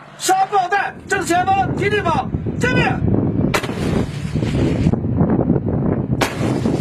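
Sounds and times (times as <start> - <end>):
rumbling engine and battlefield noise: 0.0 - 6.7
speech: 0.2 - 3.1
infantry fighting vehicles firing during a live-fire exercise: 3.5 - 4.2, 6.2 - 6.7.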